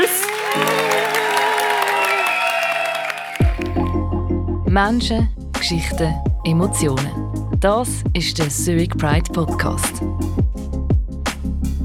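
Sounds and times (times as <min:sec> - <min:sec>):
crowd applause: 0:00.0 - 0:04.0
whistling: 0:01.8 - 0:03.6
deep pulsing synth tune: 0:03.7 - 0:10.8
speech: 0:04.8 - 0:10.4.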